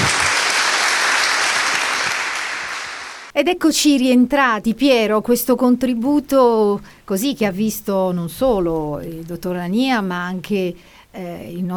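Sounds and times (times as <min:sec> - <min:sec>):
audience applause: 0:00.0 - 0:03.3
speech: 0:03.4 - 0:11.7.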